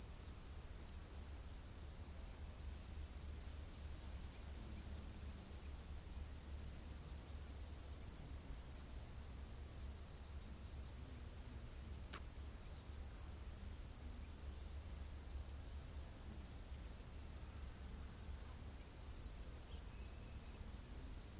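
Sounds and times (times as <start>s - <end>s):
cricket chirping: 0.0s - 21.3s
sharp click: 12.1s - 12.3s.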